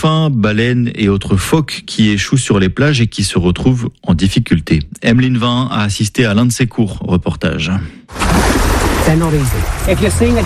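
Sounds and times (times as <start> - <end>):
speech: 0.0 - 10.4
sea water splashing around swimmers: 8.1 - 10.4.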